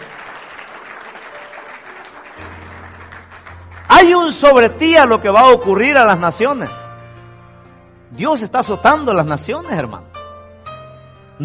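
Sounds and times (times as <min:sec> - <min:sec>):
church congregation clapping: 0:00.0 - 0:04.9
speech: 0:04.0 - 0:06.8, 0:08.2 - 0:10.2.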